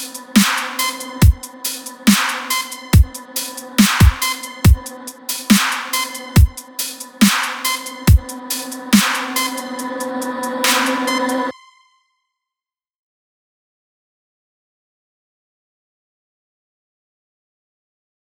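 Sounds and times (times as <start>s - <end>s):
dubstep music: 0.0s - 11.8s.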